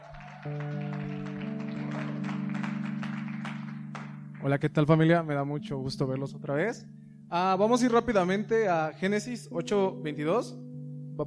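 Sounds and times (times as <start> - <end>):
audience applause: 0.0 - 4.4
speech: 0.4 - 0.8, 4.4 - 11.2.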